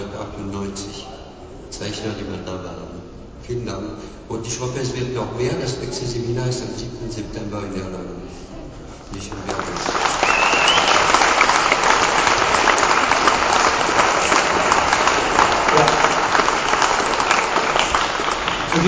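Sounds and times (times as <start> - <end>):
speech: 1.8 - 8.5, 9.1 - 10.1
audience applause: 9.3 - 18.8.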